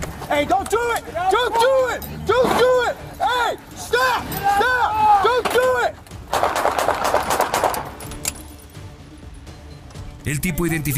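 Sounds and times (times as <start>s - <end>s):
speech: 0.3s - 5.0s, 10.3s - 10.9s
police gunfire: 6.3s - 8.0s.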